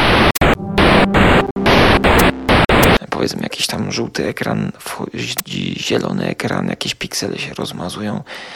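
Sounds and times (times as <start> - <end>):
electronic glitch buzz at video cuts: 0.0 - 3.0
speech: 3.2 - 8.5.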